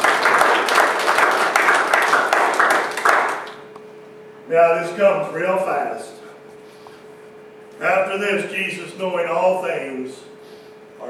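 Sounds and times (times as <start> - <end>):
audience applause: 0.0 - 3.7
speech: 4.5 - 6.2, 7.8 - 10.3.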